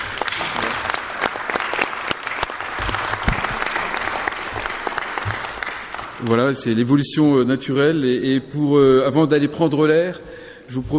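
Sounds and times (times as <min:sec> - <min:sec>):
crowd applause: 0:00.0 - 0:06.4
speech: 0:06.2 - 0:10.9.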